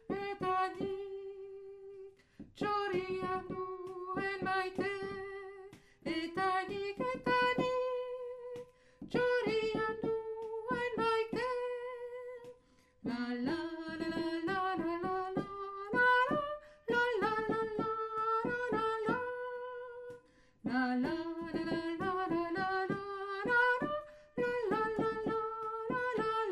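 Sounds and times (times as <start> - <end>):
soprano singing: 0.0 - 26.4.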